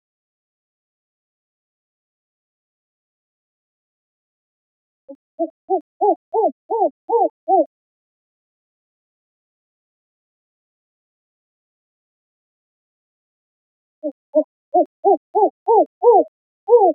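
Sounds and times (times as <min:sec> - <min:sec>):
spectacled owl hooting: 0:05.4 - 0:07.7, 0:14.0 - 0:16.9.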